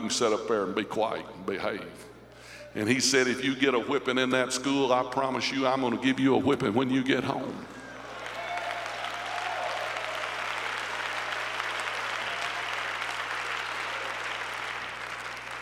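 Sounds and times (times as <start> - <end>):
speech: 0.0 - 2.1, 2.8 - 7.8
audience clapping: 7.8 - 15.5.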